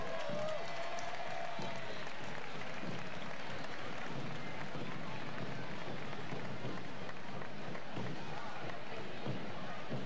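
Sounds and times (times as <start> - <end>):
audience applause: 0.0 - 9.9.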